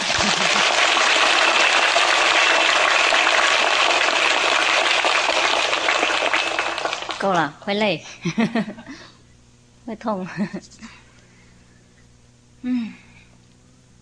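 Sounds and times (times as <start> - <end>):
laughter: 0.0 - 0.8, 8.2 - 9.1
applause from a large crowd: 0.0 - 7.2
speech: 7.2 - 9.1, 9.8 - 11.0, 12.6 - 13.0.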